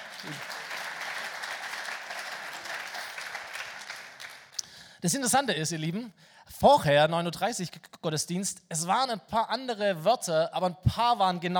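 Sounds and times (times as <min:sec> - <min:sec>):
audience applause: 0:00.0 - 0:04.6
speech: 0:00.2 - 0:00.5, 0:05.0 - 0:11.5.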